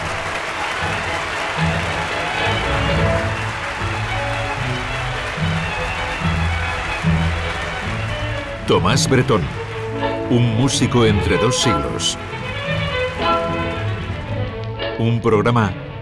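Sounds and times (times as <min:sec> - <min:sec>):
audience applause after orchestral jota: 0:00.0 - 0:16.0
speech: 0:08.7 - 0:09.7, 0:10.3 - 0:12.4, 0:15.0 - 0:15.8.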